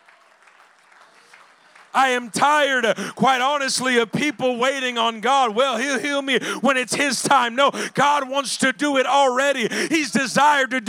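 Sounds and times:
audience clapping hands: 0:00.0 - 0:05.7
speech: 0:02.0 - 0:10.8.

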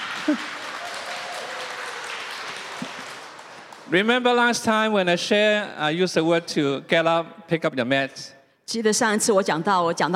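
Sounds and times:
one person clapping hands: 0:00.0 - 0:03.9
speech: 0:00.2 - 0:00.6, 0:03.9 - 0:10.1.

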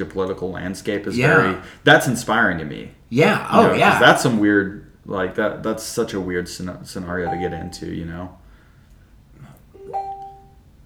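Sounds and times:
speech: 0:00.0 - 0:08.4
computer notification beep: 0:07.3 - 0:07.8.

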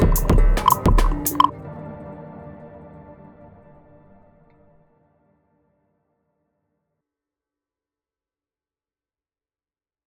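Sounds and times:
frog sound beats: 0:00.0 - 0:01.5.

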